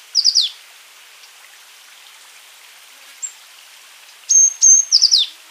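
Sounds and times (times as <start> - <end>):
azure tit calls: 0.1 - 0.5, 4.3 - 5.3.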